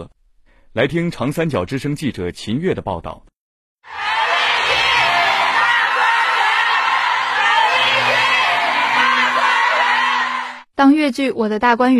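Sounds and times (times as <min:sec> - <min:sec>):
speech: 0:00.7 - 0:04.0, 0:10.8 - 0:11.9
theater audience applauding: 0:03.9 - 0:10.6.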